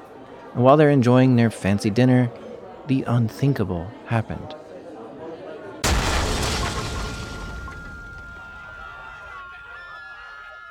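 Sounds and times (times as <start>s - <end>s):
speech: 0.6s - 4.6s
bomb explosion in a busy cafe: 5.8s - 8.8s
roaring crackling noise of debris: 5.8s - 9.4s
faint steady ringing tone: 7.1s - 10.6s.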